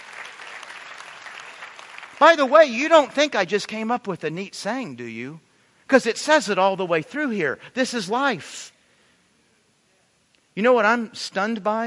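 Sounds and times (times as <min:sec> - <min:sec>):
audience applause: 0:00.0 - 0:03.1
speech: 0:02.2 - 0:08.8, 0:10.6 - 0:11.8.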